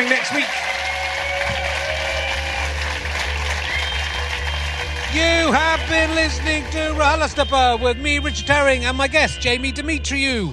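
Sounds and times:
audience applause: 0:00.0 - 0:07.8
speech: 0:05.2 - 0:10.5.

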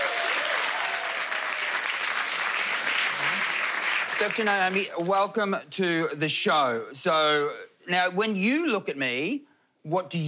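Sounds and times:
audience applause welcoming a cosmetic doctor onto a stage: 0:00.0 - 0:05.1
speech: 0:04.2 - 0:10.2.

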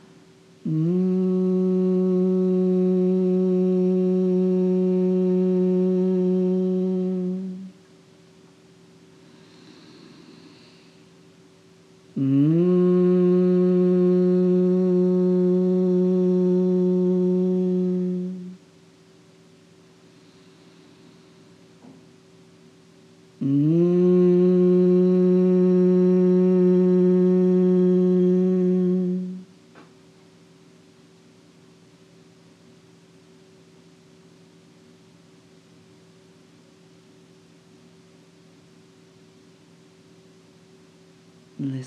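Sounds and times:
humming bee breath Bhramari chant: 0:00.0 - 0:07.9, 0:09.1 - 0:18.7, 0:19.9 - 0:21.8, 0:23.3 - 0:29.6
soft inhalations: 0:09.2 - 0:11.1, 0:20.0 - 0:21.6.

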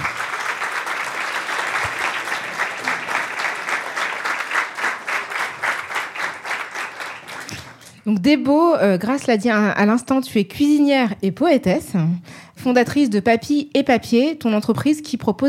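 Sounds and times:
audience applauding guest's arrival: 0:00.0 - 0:08.0
speech: 0:08.0 - 0:15.4.

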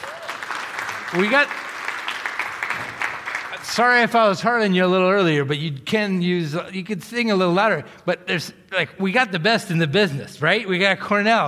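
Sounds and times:
person whooping: 0:00.0 - 0:00.4
audience clapping: 0:00.0 - 0:04.4
speech: 0:01.1 - 0:01.6, 0:03.6 - 0:11.4.

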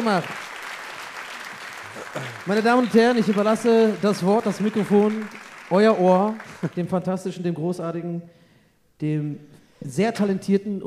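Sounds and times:
speech: 0:00.0 - 0:00.4, 0:02.1 - 0:08.4, 0:09.0 - 0:10.8
audience applause: 0:00.0 - 0:06.9.

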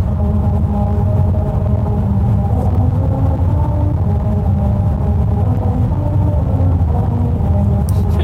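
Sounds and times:
road noise drone in California: 0:00.0 - 0:08.2.

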